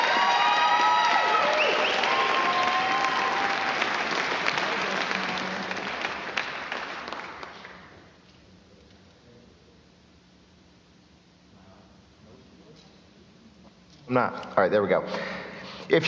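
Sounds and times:
church congregation applauding a preacher at a morning service: 0:00.0 - 0:08.1
speech: 0:14.1 - 0:16.0.

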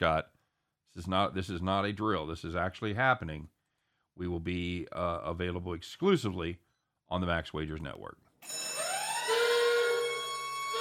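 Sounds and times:
speech: 0:00.0 - 0:03.6, 0:04.2 - 0:08.8
alarm siren sound effect: 0:08.4 - 0:10.7.

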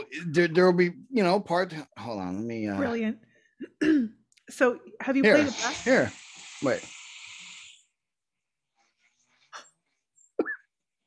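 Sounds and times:
speech: 0:00.1 - 0:07.0
person snoring from a sleep recording playback: 0:05.3 - 0:07.9.

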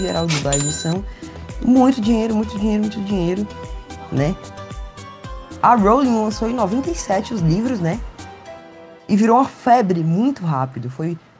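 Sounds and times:
cash register sound effect: 0:00.0 - 0:01.1
speech: 0:00.0 - 0:04.6, 0:05.6 - 0:08.1, 0:09.1 - 0:11.3.

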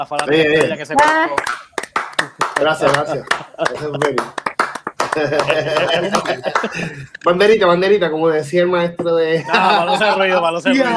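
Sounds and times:
speech: 0:00.0 - 0:01.6, 0:02.3 - 0:04.4, 0:05.2 - 0:10.9
scattered applause: 0:00.1 - 0:06.9
laughter: 0:02.6 - 0:07.2, 0:09.3 - 0:10.9.

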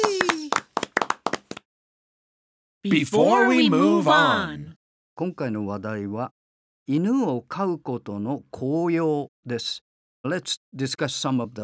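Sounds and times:
short burst of hand clapping: 0:00.0 - 0:01.7
speech: 0:02.8 - 0:11.6.

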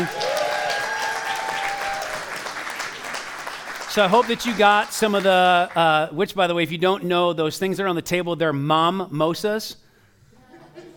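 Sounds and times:
audience applause: 0:00.0 - 0:05.3
speech: 0:04.0 - 0:09.8.

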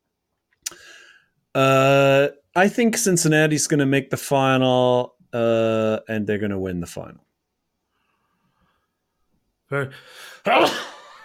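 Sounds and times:
speech: 0:01.6 - 0:01.8, 0:02.6 - 0:07.3, 0:09.7 - 0:10.9
sneeze: 0:10.5 - 0:11.0.

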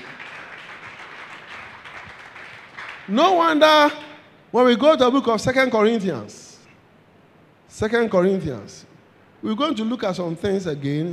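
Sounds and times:
audience clapping hands: 0:00.0 - 0:03.2
speech: 0:03.1 - 0:06.4, 0:07.7 - 0:11.1.

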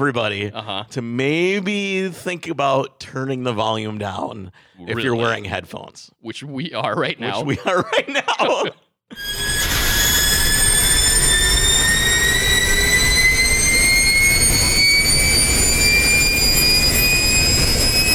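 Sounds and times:
speech: 0:00.0 - 0:09.4
laughter: 0:07.2 - 0:08.8
loud electric race car accelerating hard, in-car: 0:09.2 - 0:18.1.

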